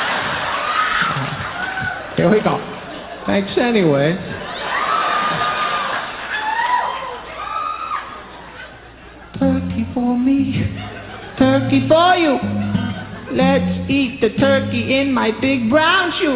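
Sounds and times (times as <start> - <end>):
audience clapping and cheering: 0.0 - 2.6, 4.5 - 8.4
laughter: 0.0 - 3.3, 4.3 - 6.6, 8.2 - 13.8
speech: 2.2 - 4.4, 11.7 - 12.5, 13.3 - 16.3.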